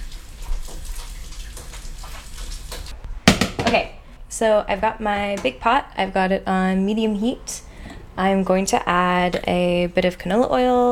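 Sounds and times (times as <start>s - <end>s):
hands being washed under a running tap: 0.0s - 3.0s
speech: 3.7s - 10.9s.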